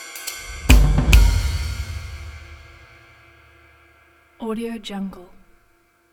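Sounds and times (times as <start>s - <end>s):
jazz drum logo jingle: 0.2s - 3.2s.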